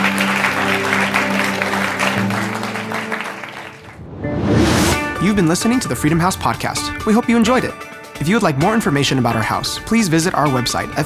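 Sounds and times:
audience clapping hands: 0.0s - 4.1s
speech: 5.4s - 11.0s.

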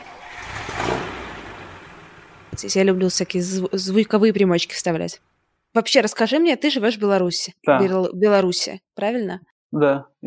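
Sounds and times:
car engine starting: 0.0s - 5.5s
speech: 2.6s - 10.2s.

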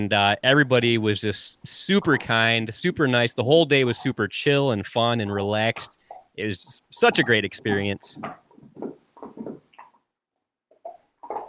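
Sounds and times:
speech: 0.0s - 8.8s
dog chewing on a bone: 8.2s - 10.0s.

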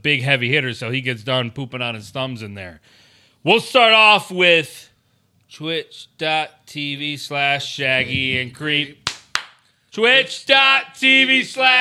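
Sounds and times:
speech: 0.0s - 4.9s, 5.5s - 9.0s, 9.9s - 11.7s
person making loud drawn-out vocal sounds: 8.0s - 8.5s
single sharp hand clap: 9.0s - 9.7s.

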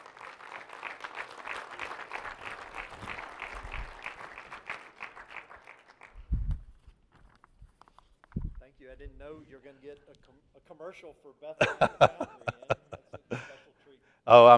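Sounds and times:
audience applause: 0.0s - 6.3s
speech: 9.0s - 12.6s, 14.3s - 14.5s
laughter: 11.6s - 13.7s.

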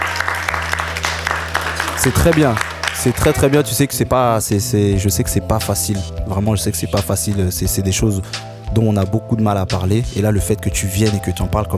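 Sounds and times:
audience applause: 0.0s - 3.8s
speech: 2.0s - 11.7s.

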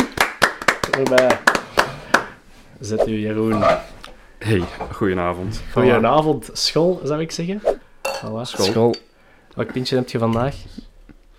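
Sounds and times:
scattered handclaps from a small group: 0.0s - 2.4s
speech: 1.0s - 1.5s, 2.8s - 10.9s.

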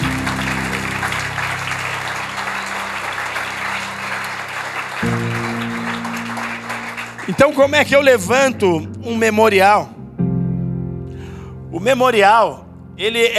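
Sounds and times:
audience applauding: 0.0s - 8.4s
sustained low organ or keyboard chords: 0.0s - 13.3s
speech: 7.3s - 10.0s, 11.7s - 13.3s.

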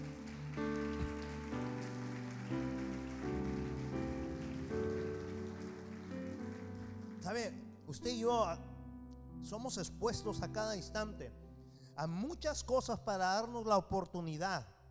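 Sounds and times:
audience applauding: 0.0s - 7.7s
speech: 7.3s - 8.7s, 9.4s - 11.4s, 12.0s - 14.7s.

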